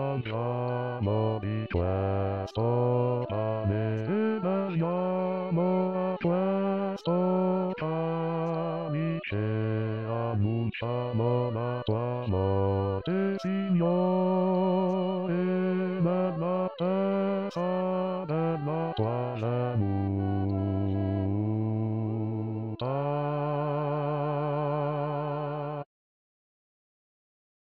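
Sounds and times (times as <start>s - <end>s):
bass voices singing for the liturgical year: 0.0s - 25.2s.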